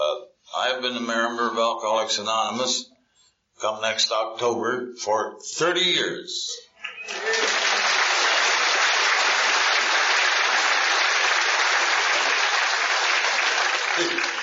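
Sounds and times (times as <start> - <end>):
speech: 0.6 - 2.9, 3.6 - 7.5
audience applause: 7.0 - 14.4.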